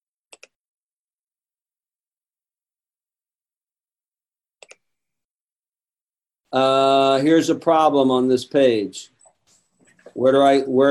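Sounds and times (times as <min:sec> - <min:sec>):
computer mouse clicks: 0:00.3 - 0:00.6, 0:04.6 - 0:04.9
speech: 0:06.5 - 0:09.1, 0:10.2 - 0:10.8.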